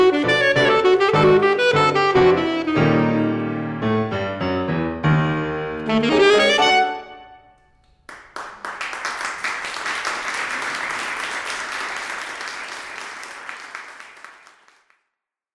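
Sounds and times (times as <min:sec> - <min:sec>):
alto saxophone playing a concerto rondo: 0:00.0 - 0:03.7, 0:05.8 - 0:07.8
piano playing a string orchestra reduction: 0:00.0 - 0:14.2.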